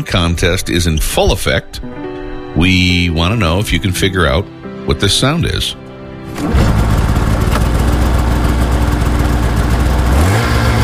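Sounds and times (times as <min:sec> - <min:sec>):
speech: 0:00.0 - 0:02.0, 0:02.6 - 0:06.9
Polaris 600 XC snowmobile electric engine start and revving: 0:06.3 - 0:10.8.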